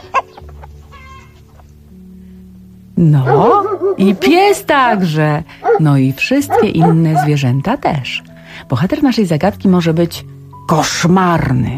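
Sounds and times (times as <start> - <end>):
hens clucking: 0.0 - 1.9, 3.3 - 7.4
speech: 3.0 - 11.7.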